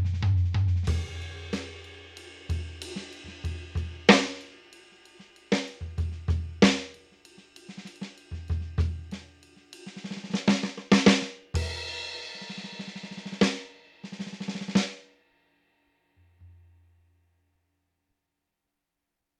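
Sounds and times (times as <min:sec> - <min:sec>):
Yamaha DTX8K drum kit old kit: 0:00.0 - 0:15.0.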